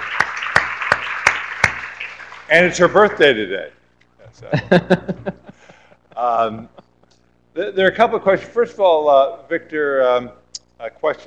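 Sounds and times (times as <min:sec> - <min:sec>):
audience applause: 0:00.0 - 0:03.2
speech: 0:02.5 - 0:05.4, 0:06.2 - 0:06.8, 0:07.6 - 0:11.2
laughter: 0:04.3 - 0:06.9.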